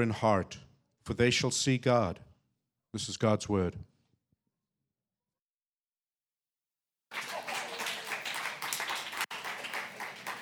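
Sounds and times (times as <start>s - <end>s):
speech: 0.0s - 2.3s, 2.9s - 3.9s
crowd applauding: 7.1s - 10.3s.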